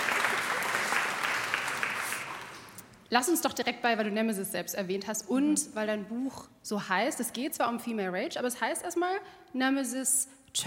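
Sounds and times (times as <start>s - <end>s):
audience clapping: 0.0s - 2.9s
speech: 3.1s - 10.6s.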